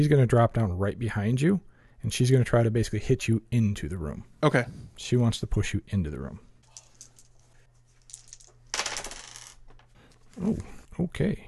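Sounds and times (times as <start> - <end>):
speech: 0.0 - 6.5, 10.4 - 11.4
dice clattering on a hard surface: 6.7 - 9.9.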